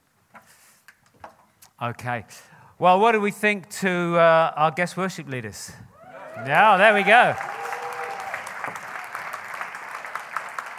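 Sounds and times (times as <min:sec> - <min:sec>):
speech: 0:01.8 - 0:07.5
crowd clapping: 0:06.3 - 0:10.7.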